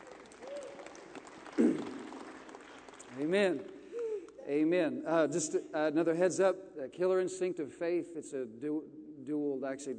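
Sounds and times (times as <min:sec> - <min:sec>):
audience clapping: 0:00.0 - 0:04.4
speech: 0:03.2 - 0:03.8, 0:04.5 - 0:09.9.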